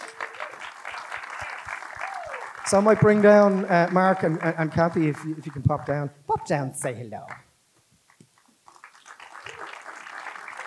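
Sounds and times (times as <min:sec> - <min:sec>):
audience applause at a film festival event: 0:00.0 - 0:05.7, 0:08.7 - 0:10.6
speech: 0:02.7 - 0:07.5.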